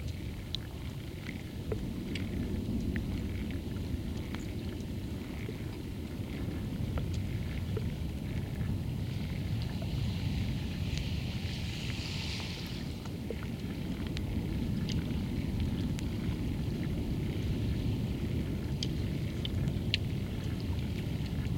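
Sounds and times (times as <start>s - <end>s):
sea water in a seapool in Tenerife: 0.0s - 21.5s.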